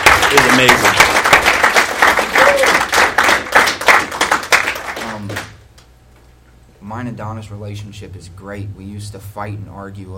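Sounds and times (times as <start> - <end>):
audience applause: 0.0 - 5.5
speech: 0.3 - 1.1, 7.0 - 10.1.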